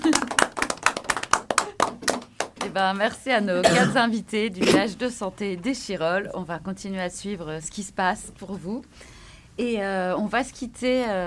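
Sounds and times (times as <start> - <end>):
scattered hand claps from a small group: 0.0 - 2.8
speech: 2.8 - 11.2.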